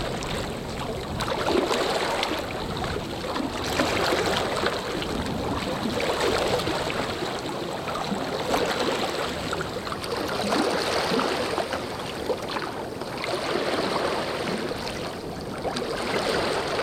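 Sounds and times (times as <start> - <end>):
lake ambience at dusk: 0.0 - 16.8.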